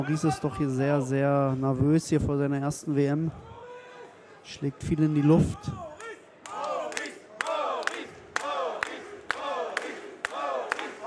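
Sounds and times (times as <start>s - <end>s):
speech: 0.0s - 3.5s, 4.5s - 5.9s
boxing fans chanting at a world title fight: 4.8s - 11.0s.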